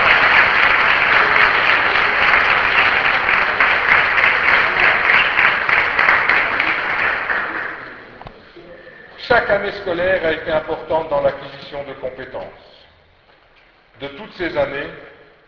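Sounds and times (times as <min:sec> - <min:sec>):
audience applause: 0:00.0 - 0:08.3
speech: 0:09.5 - 0:12.8, 0:14.0 - 0:15.1.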